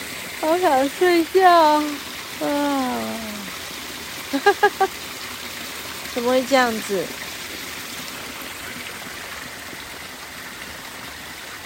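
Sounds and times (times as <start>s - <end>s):
flowing stream water: 0.0s - 11.6s
speech: 0.4s - 3.4s, 4.3s - 5.1s, 6.2s - 7.2s.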